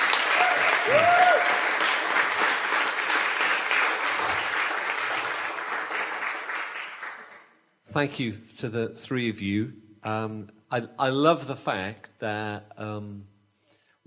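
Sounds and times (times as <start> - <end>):
crowd applauding: 0.0 - 7.6
speech: 0.9 - 1.2, 8.0 - 13.3.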